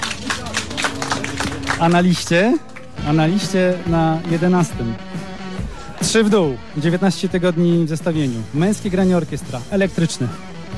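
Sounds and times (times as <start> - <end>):
audience applause: 0.0 - 2.9
speech: 1.8 - 5.2, 6.0 - 10.5.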